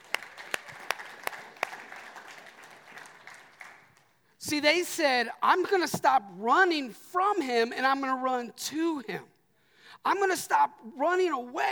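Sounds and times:
audience hand clapping: 0:00.0 - 0:04.2
speech: 0:04.5 - 0:09.3, 0:10.0 - 0:11.7.

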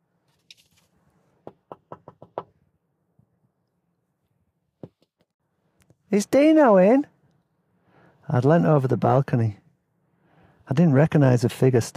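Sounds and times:
knock at the door: 0:01.4 - 0:02.5
speech: 0:06.1 - 0:07.1, 0:08.3 - 0:09.6, 0:10.7 - 0:11.9.

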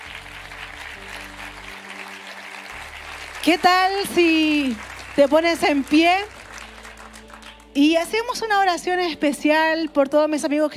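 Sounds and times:
audience applause: 0:00.0 - 0:07.8
low sustained musical drone: 0:00.0 - 0:08.3
speech: 0:03.4 - 0:06.4, 0:07.7 - 0:10.7.

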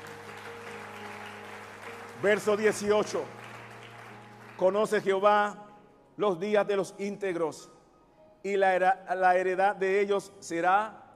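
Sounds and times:
audience clapping: 0:00.0 - 0:05.3
speech: 0:02.2 - 0:03.4, 0:04.6 - 0:05.6, 0:06.2 - 0:07.8, 0:08.4 - 0:11.0.

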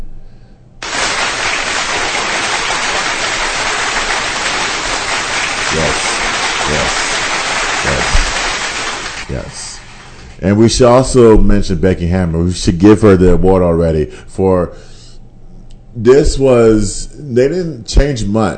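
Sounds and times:
applause sound effect: 0:00.8 - 0:10.2
speech: 0:10.4 - 0:14.9, 0:16.0 - 0:18.5.

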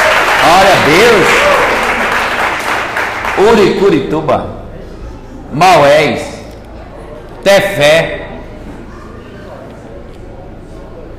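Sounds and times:
audience applauding: 0:00.0 - 0:03.8
speech: 0:00.9 - 0:01.4, 0:03.4 - 0:04.6, 0:05.5 - 0:06.3, 0:07.4 - 0:08.2.

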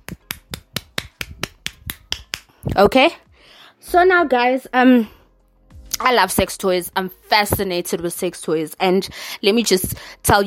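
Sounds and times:
hand clapping: 0:00.0 - 0:02.8
speech: 0:02.8 - 0:03.2, 0:03.8 - 0:05.2, 0:06.0 - 0:10.4.

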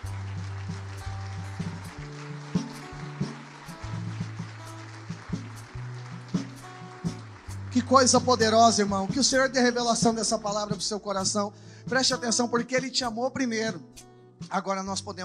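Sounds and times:
audience applauding: 0:00.0 - 0:10.7
low sustained keyboard bass notes: 0:00.0 - 0:15.2
speech: 0:07.8 - 0:15.2.

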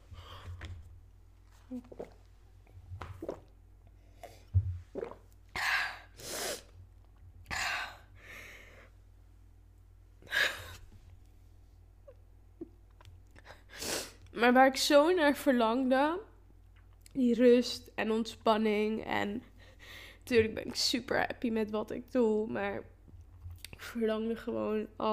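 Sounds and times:
speech: 0:01.7 - 0:02.2, 0:14.4 - 0:16.3, 0:17.2 - 0:19.5, 0:20.3 - 0:22.9, 0:23.8 - 0:25.1
drinking a sip of water: 0:03.2 - 0:06.8.

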